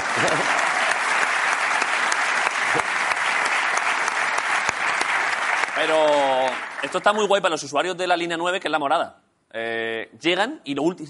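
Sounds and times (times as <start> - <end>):
applause: 0.0 - 7.7
speech: 0.2 - 0.6, 5.8 - 11.0.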